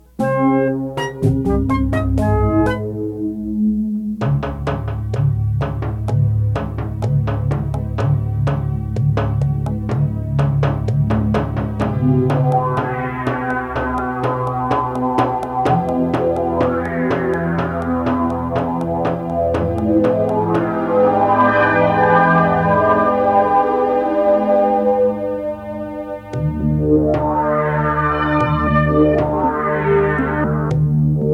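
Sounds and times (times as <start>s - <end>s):
synthesizer parts: 0.0s - 31.3s.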